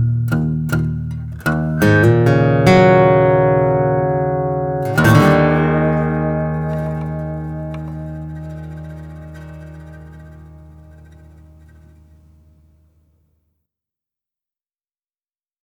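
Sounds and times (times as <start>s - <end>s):
blues music: 0.0s - 12.4s.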